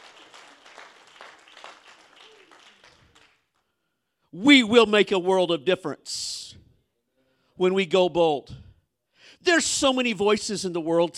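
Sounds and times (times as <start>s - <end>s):
audience hand clapping: 0.0s - 3.7s
speech: 4.3s - 6.4s, 7.6s - 8.6s, 9.4s - 11.1s.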